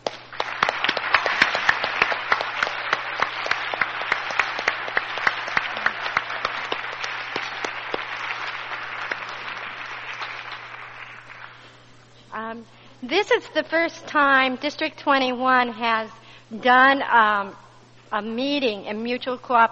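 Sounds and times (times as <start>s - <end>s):
audience round of applause: 0.0s - 11.7s
speech: 13.0s - 19.7s.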